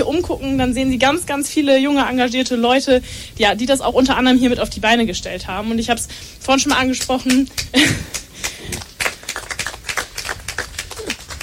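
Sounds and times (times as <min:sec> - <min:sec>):
speech: 0:00.0 - 0:08.2
audience clapping: 0:06.7 - 0:11.4.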